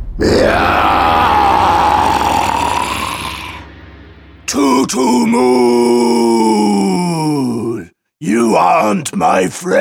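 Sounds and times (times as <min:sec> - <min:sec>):
narrator imitating a dragon roar: 0:00.2 - 0:03.7, 0:04.5 - 0:07.9
speech: 0:04.9 - 0:06.3, 0:08.4 - 0:09.7.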